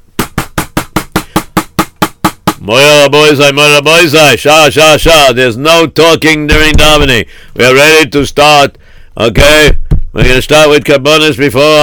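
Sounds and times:
hand slapping a table: 0:00.2 - 0:02.6
speech: 0:02.6 - 0:11.8.

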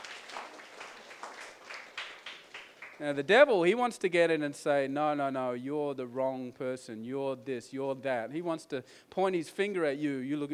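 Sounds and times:
audience clapping: 0:00.0 - 0:03.2
speech: 0:03.0 - 0:10.5.

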